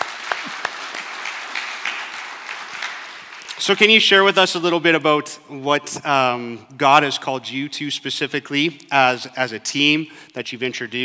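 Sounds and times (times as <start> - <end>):
audience applause: 0.0 - 3.6
speech: 3.6 - 11.0.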